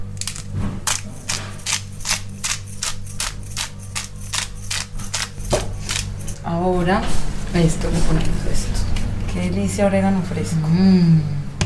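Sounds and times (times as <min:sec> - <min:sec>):
grinder cracking a five-pepper blend over a salad: 0:00.0 - 0:06.4
speech: 0:06.5 - 0:11.4.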